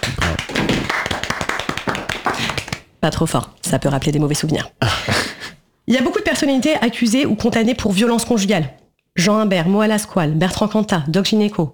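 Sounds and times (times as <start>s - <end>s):
applause: 0.0s - 2.8s
speech: 3.0s - 5.2s, 5.9s - 11.7s.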